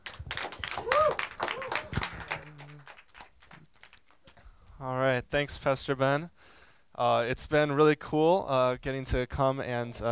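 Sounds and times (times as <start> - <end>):
church congregation applauding and cheering to welcome a guest pastor: 0.0 - 4.2
person whooping: 0.6 - 3.0
speech: 4.8 - 6.4, 7.0 - 10.0.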